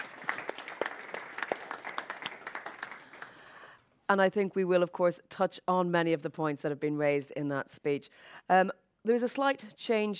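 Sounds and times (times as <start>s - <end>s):
audience applause: 0.0s - 3.6s
speech: 4.1s - 10.1s.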